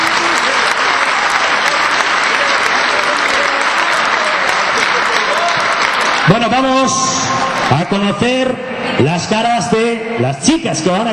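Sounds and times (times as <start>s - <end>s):
audience applause: 0.0s - 8.1s
speech: 6.4s - 11.1s.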